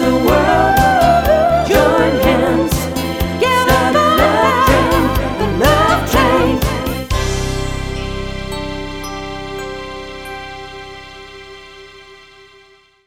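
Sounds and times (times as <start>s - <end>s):
disco band playing Motown, soul and 70s disco hits: 0.0s - 11.9s.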